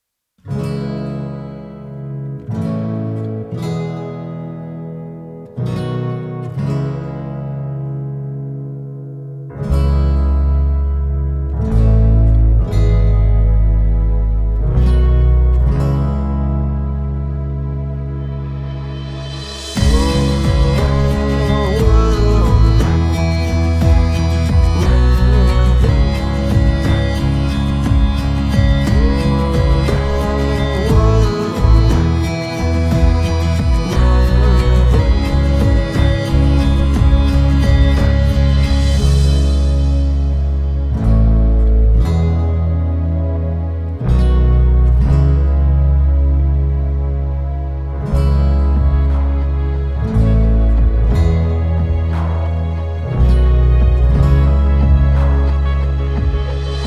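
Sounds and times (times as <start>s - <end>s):
pop ballad: 0.5s - 56.8s.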